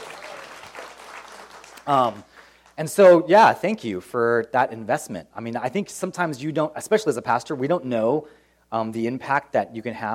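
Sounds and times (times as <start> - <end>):
soft applause from a church congregation: 0.0 - 2.8
speech: 1.8 - 10.1.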